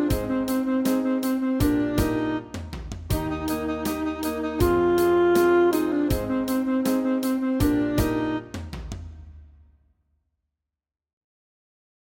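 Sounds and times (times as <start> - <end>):
saxophone study: 0.0 - 8.7.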